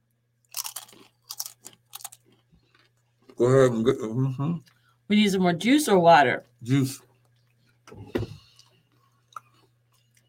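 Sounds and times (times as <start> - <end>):
person chewing horseradish: 0.4 - 3.6, 8.4 - 10.2
speech: 3.4 - 7.1, 7.9 - 8.2.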